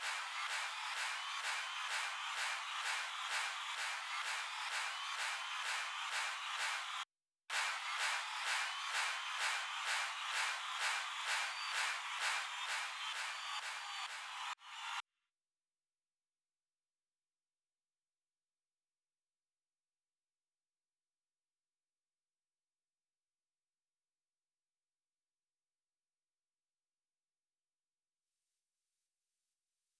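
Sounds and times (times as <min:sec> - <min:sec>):
drum loop at 128 BPM: 0:00.0 - 0:14.6
crowd: 0:00.0 - 0:15.0.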